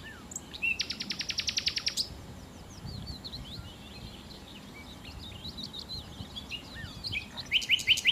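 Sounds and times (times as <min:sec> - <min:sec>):
common nightingale song: 0:00.0 - 0:08.1
faint chirps from other birds: 0:00.0 - 0:08.1.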